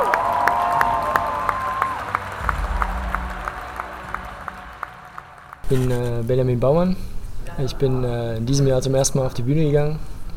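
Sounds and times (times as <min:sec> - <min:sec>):
audience applause: 0:00.0 - 0:06.2
speech: 0:05.7 - 0:10.3.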